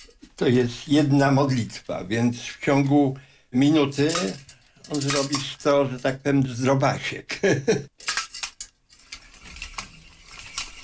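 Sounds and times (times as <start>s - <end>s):
speech: 0.4s - 8.1s
prayer wheels turning and rattling: 3.6s - 6.6s, 8.0s - 10.8s.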